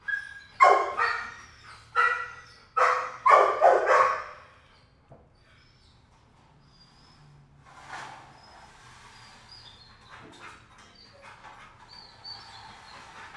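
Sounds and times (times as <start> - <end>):
kennel dog barking: 0.6 - 1.4, 2.0 - 4.5.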